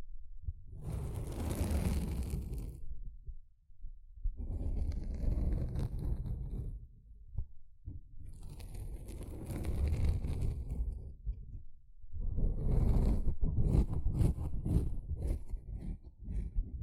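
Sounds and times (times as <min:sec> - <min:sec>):
sponge scratching and squishing: 0:00.8 - 0:02.8, 0:04.4 - 0:06.8, 0:08.3 - 0:11.1, 0:12.2 - 0:16.8.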